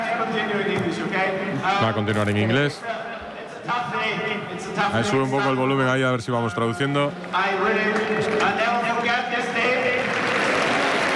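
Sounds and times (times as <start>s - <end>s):
speech: 0.4s - 3.0s, 3.7s - 9.3s
audience applauding: 9.6s - 11.1s.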